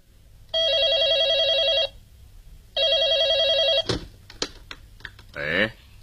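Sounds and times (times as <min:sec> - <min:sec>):
telephone ringing with electronic trill: 0:00.5 - 0:02.0, 0:02.8 - 0:03.9.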